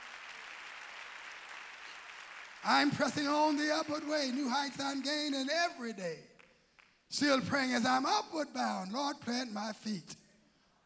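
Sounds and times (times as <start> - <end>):
audience clapping: 0.0 - 7.1
speech: 2.6 - 6.3, 7.1 - 10.2.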